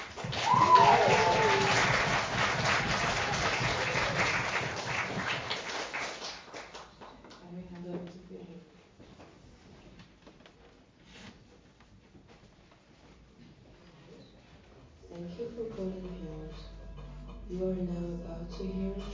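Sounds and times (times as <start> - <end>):
audience applause: 0.0 - 7.2
person speaking: 15.0 - 19.1.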